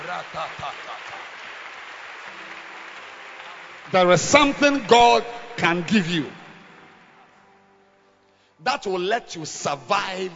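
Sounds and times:
audience clapping: 0.0 - 7.1
speech: 0.1 - 1.5, 2.3 - 3.1, 3.9 - 6.4, 8.6 - 10.3.

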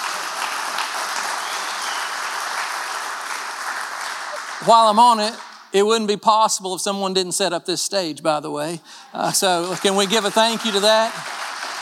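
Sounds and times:
audience applause: 0.0 - 5.7, 9.2 - 11.8
speech: 4.6 - 11.4.

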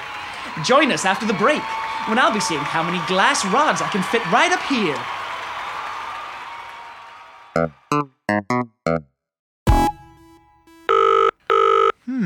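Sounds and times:
speech: 0.4 - 5.2, 7.6 - 9.1
telephone ringing: 9.7 - 12.0.

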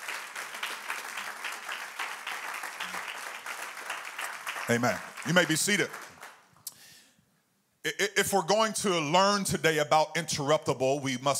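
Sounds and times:
audience clapping hands: 0.0 - 6.6
speech: 4.7 - 6.0, 7.8 - 11.3.

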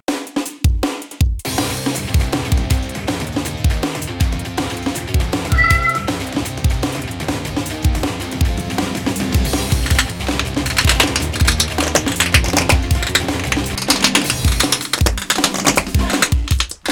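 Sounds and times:
upbeat band track with drums and guitar: 1.4 - 16.9
cat meowing along with music: 5.5 - 6.3.

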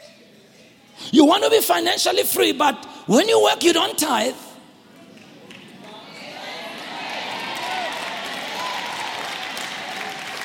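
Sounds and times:
speech: 1.1 - 4.4
audience clapping: 5.0 - 6.0, 6.6 - 10.4.

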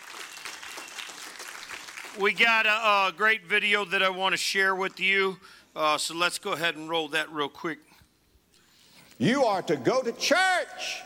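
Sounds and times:
audience applause: 0.0 - 2.4
speech: 2.2 - 7.9, 9.2 - 11.0.

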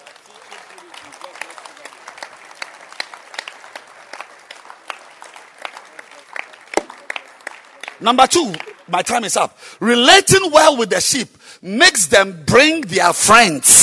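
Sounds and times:
church congregation clapping hands: 0.0 - 10.7
speech: 8.0 - 13.8.

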